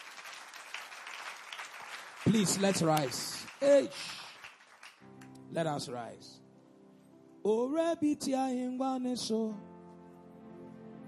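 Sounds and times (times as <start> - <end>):
people clapping for Jesus: 0.0 - 5.4
speech: 2.2 - 4.2, 5.5 - 6.4, 7.4 - 9.7.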